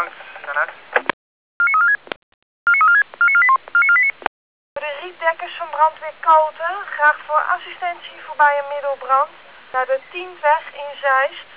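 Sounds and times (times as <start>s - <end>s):
emergency crew pager alerting tones: 1.6s - 2.0s, 2.7s - 4.2s
speech: 5.8s - 11.5s.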